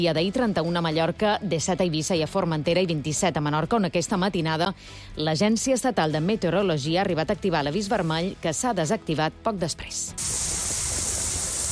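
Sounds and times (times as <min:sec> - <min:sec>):
speech: 0:00.0 - 0:10.8
rain in Mahó: 0:10.2 - 0:11.7.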